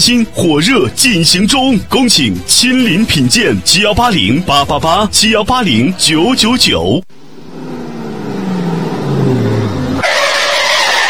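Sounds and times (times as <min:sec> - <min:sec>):
speech: 0:00.0 - 0:07.2
car engine whining as vehicle brakes hard: 0:06.4 - 0:11.0
tires screeching in a skid: 0:07.2 - 0:11.0.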